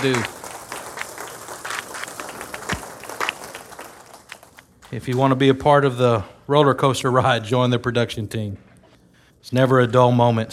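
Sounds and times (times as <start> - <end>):
speech: 0.0 - 0.4, 4.9 - 8.7, 9.4 - 10.5
small audience hand clapping: 0.0 - 5.4.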